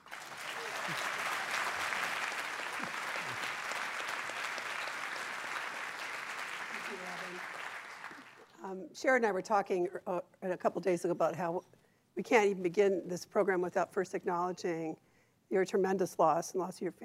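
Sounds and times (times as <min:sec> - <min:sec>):
audience applause at the City Club of Cleveland welcoming a U.S. senator: 0:00.0 - 0:08.5
speech: 0:08.7 - 0:17.0.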